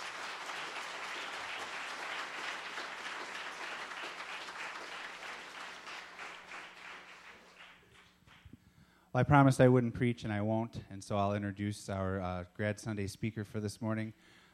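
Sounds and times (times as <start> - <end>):
congregation clapping at a Grad Sunday church service: 0.0 - 8.6
speech: 9.2 - 14.4.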